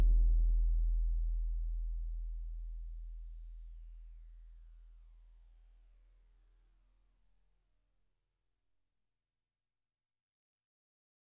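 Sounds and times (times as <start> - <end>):
Yamaha PSR-28 keyboard bass sounds: 0.0 - 1.4.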